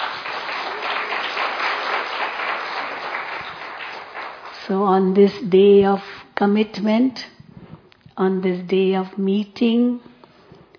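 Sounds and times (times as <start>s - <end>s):
crowd applauding: 0.0s - 4.7s
speech: 4.7s - 7.4s, 8.2s - 10.1s.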